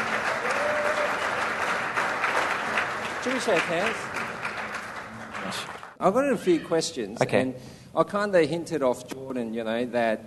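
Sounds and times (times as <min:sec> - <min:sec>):
audience applause at a live church recording: 0:00.0 - 0:06.0
speech: 0:03.2 - 0:04.2, 0:05.5 - 0:10.2.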